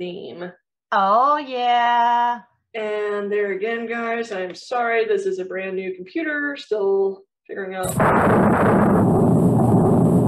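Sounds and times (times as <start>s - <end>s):
speech: 0.0s - 9.8s
thunder: 7.9s - 10.2s.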